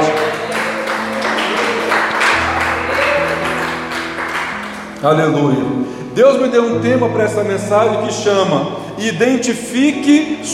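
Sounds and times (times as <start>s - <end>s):
audience clapping hands: 0.0s - 5.5s
speech: 5.0s - 10.5s.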